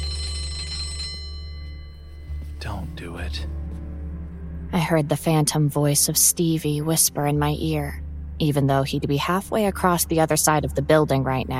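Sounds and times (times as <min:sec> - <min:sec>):
electric school bell signaling class change: 0:00.0 - 0:02.3
speech: 0:02.6 - 0:03.7, 0:04.7 - 0:11.5.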